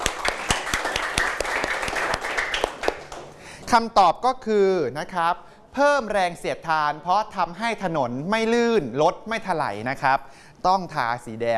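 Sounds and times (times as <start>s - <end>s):
students clapping: 0.0s - 3.5s
speech: 3.7s - 11.5s.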